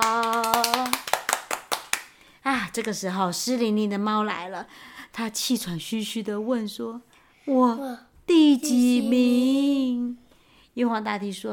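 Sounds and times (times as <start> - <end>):
hands clapping: 0.0 - 2.2
speech: 2.8 - 10.2, 10.8 - 11.5.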